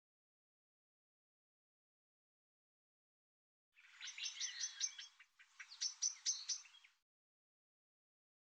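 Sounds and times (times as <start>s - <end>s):
bird singing bursts of fast high chirps: 3.8s - 7.0s.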